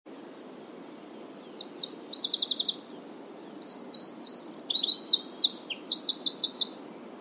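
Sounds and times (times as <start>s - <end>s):
Eurasian wren singing shrill notes and trills: 1.4s - 6.9s.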